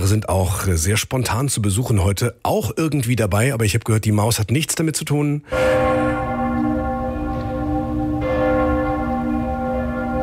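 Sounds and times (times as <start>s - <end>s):
speech: 0.1s - 6.7s
church bells of Cologne Cathedral pealing: 5.5s - 10.2s.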